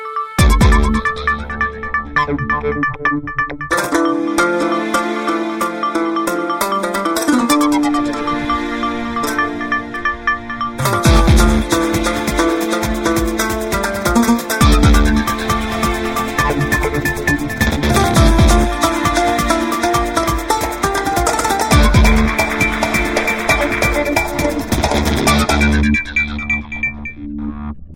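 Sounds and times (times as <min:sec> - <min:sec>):
funky ringtone: 0:00.4 - 0:27.3.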